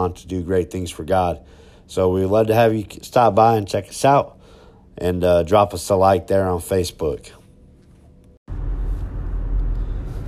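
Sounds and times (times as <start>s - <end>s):
speech: 0.1s - 4.4s, 5.0s - 7.4s
car interior road rumble and hum driving home from work: 8.5s - 10.2s.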